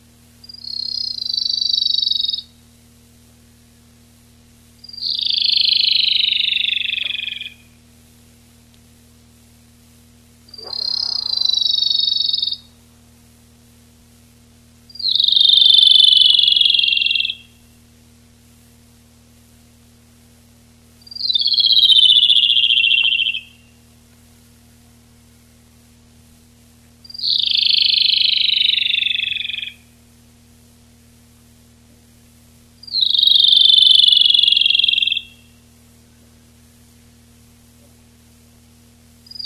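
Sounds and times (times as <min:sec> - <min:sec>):
Locustella lanceolata song: 0:00.4 - 0:02.6, 0:04.8 - 0:07.8, 0:10.5 - 0:12.8, 0:14.9 - 0:17.6, 0:21.1 - 0:23.8, 0:27.0 - 0:29.9, 0:32.8 - 0:35.6.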